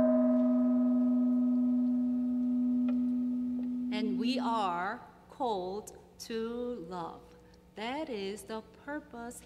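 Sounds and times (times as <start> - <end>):
gong struck: 0.0 - 4.5
speech: 4.0 - 9.4.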